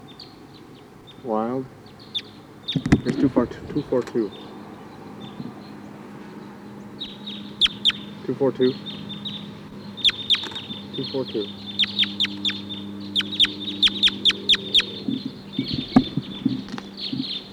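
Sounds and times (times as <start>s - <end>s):
flock of wild crossbills chittering: 0.0s - 17.5s
soft murmuring: 0.0s - 17.5s
speech: 1.2s - 1.8s, 2.7s - 4.5s, 8.3s - 9.0s, 11.0s - 11.6s.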